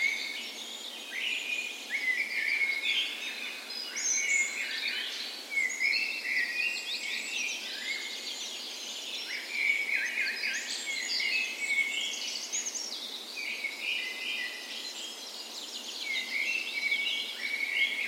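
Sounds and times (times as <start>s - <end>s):
dawn chorus birdsong: 0.0s - 18.0s.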